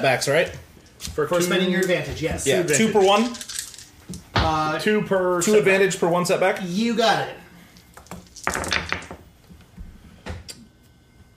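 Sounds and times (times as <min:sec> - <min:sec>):
speech: 0:00.0 - 0:03.5, 0:04.1 - 0:07.4
dice clattering across a tabletop: 0:07.8 - 0:09.2.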